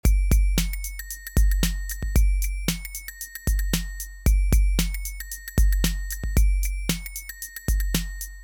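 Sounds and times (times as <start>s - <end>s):
music loop: 0.0s - 8.4s.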